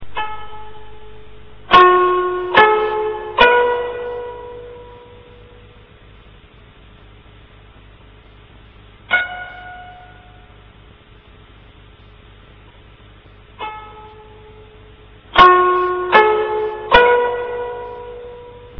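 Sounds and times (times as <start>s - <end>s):
koto: 0.0s - 5.6s, 9.0s - 10.6s, 13.6s - 18.7s.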